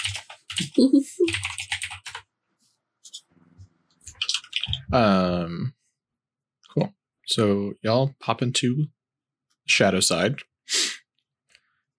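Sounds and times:
rapid typing on a computer keyboard: 0.0 - 2.3, 4.1 - 4.9
speech: 0.1 - 1.6, 4.9 - 5.8, 6.8 - 9.0, 9.7 - 10.8.

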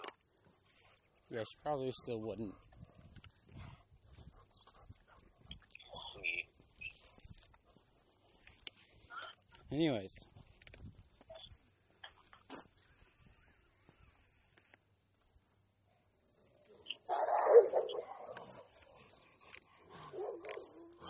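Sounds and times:
speech: 1.3 - 2.7, 9.7 - 10.2
dogs barking: 16.7 - 21.0.

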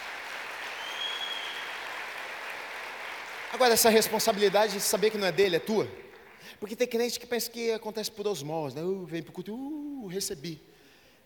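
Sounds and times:
audience applause: 0.0 - 6.5
speech: 3.5 - 10.7.

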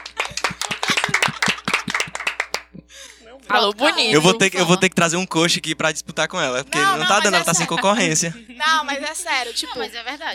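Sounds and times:
lively applause from a small group: 0.0 - 2.7
laughter: 0.0 - 3.2, 6.7 - 10.3
speech: 3.5 - 10.3.

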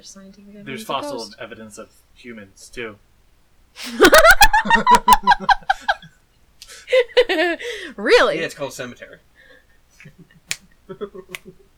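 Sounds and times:
speech: 0.0 - 3.1, 3.7 - 6.1, 6.9 - 9.3, 10.9 - 11.6
laughter: 3.9 - 6.1, 10.0 - 11.7
finger snapping: 10.0 - 10.7, 11.3 - 11.5.

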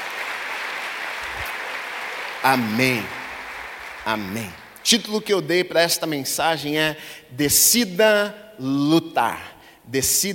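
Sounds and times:
church congregation applauding Jesus during a Portuguese-language service: 0.0 - 5.2
speech: 2.4 - 3.2, 4.0 - 10.3.

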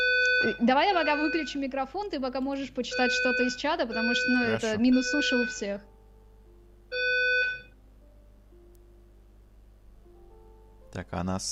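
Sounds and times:
fire alarm electronic tone: 0.0 - 1.6, 2.9 - 5.8, 6.9 - 7.7
speech: 0.4 - 5.9, 11.0 - 11.5.

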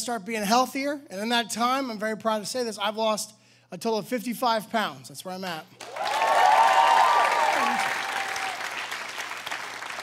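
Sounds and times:
speech: 0.0 - 6.2
audience cheers and whoops: 5.8 - 9.2
audience applause: 5.8 - 10.0.

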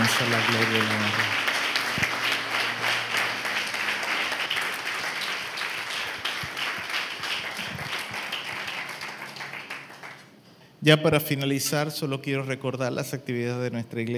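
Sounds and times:
audience applauding: 0.0 - 10.4
speech: 0.1 - 2.1, 10.8 - 14.1.

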